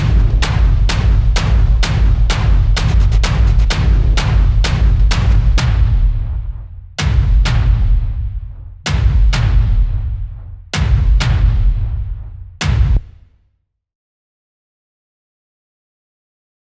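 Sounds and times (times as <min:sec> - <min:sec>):
drum loops: 0:00.0 - 0:13.1.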